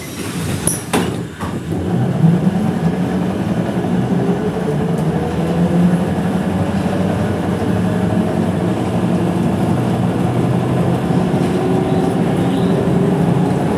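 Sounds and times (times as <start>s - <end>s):
bus: 0.0s - 13.7s.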